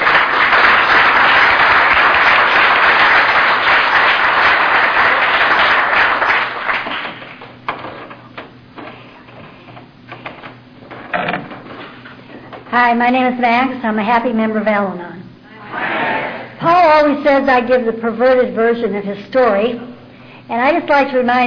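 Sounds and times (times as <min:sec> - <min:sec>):
audience clapping to welcome a speaker: 0:00.0 - 0:07.8
scattered knocks: 0:07.0 - 0:11.8
speech: 0:12.8 - 0:15.1, 0:16.9 - 0:19.9, 0:20.5 - 0:21.4.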